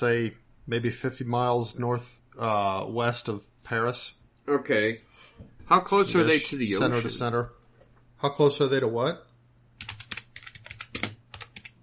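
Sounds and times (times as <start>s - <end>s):
speech: 0.0s - 7.6s, 8.2s - 10.0s
low steady hum: 0.0s - 9.9s
typing on a computer keyboard: 9.8s - 11.8s.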